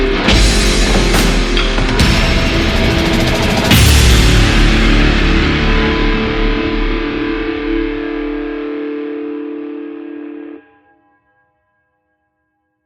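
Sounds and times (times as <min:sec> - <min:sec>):
orchestral dubstep soundtrack music: 0:00.0 - 0:08.2.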